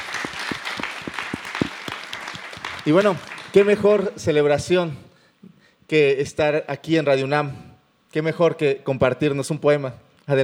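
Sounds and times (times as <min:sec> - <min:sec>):
applause: 0:00.0 - 0:04.2
speech: 0:02.8 - 0:05.0, 0:05.9 - 0:10.4.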